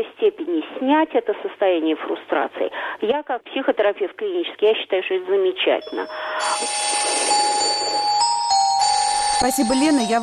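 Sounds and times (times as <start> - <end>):
speech: 0.0 - 7.2, 9.4 - 10.2
incoming call ringing on a radio call-in line: 5.7 - 10.2.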